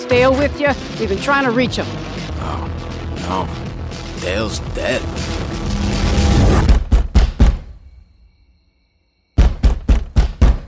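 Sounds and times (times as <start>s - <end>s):
speech: 0.1s - 6.0s
pounding knocks on a door: 6.6s - 7.8s, 9.4s - 10.6s.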